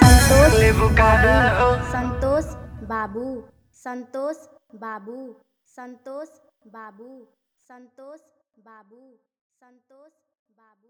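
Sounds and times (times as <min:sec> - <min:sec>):
vibrating bass music mix: 0:00.0 - 0:03.0.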